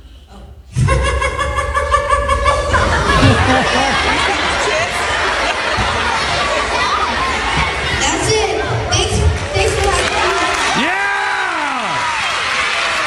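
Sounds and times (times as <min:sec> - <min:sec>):
laughter: 0:00.6 - 0:08.0
loud audience applause: 0:00.8 - 0:13.0.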